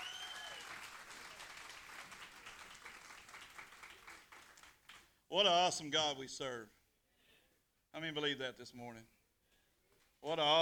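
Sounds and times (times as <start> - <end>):
audience applauding the band: 0.0 - 5.0
speech: 5.3 - 6.8, 8.0 - 9.2, 10.2 - 10.6.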